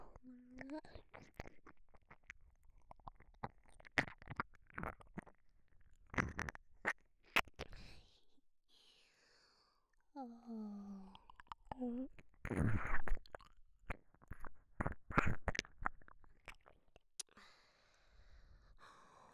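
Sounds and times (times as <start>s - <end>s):
ASMR ear licking and ear cleaning sounds: 0.8s - 7.8s, 11.1s - 17.3s.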